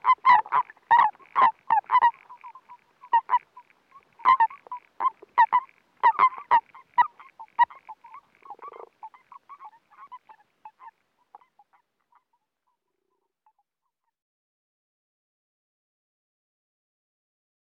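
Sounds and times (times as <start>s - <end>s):
common toads spawning recorded underwater: 0.0s - 12.3s.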